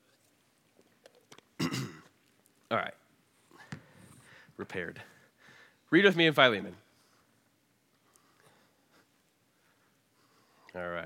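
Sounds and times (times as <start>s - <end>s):
man with a head cold clearing his throat: 1.6s - 2.1s
speech: 2.7s - 3.0s, 4.6s - 5.1s, 5.9s - 6.8s, 10.8s - 11.0s.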